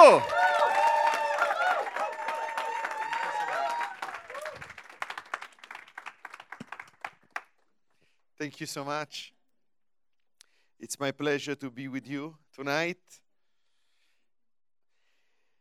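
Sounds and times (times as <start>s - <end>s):
audience whoops: 0.0s - 4.8s
standing audience applauding a guest welcomed to the stage: 0.0s - 7.5s
speech: 0.1s - 0.4s, 8.4s - 9.4s, 10.8s - 13.2s.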